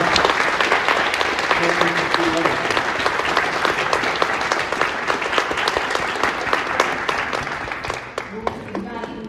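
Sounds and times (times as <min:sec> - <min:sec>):
audience applause: 0:00.0 - 0:09.1.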